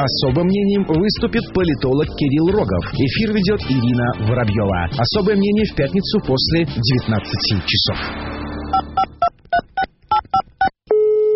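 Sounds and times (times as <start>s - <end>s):
speech: 0.0s - 8.4s
telephone touch-tone dialing beeps: 8.7s - 11.3s
telephone ringing tone: 10.9s - 11.3s.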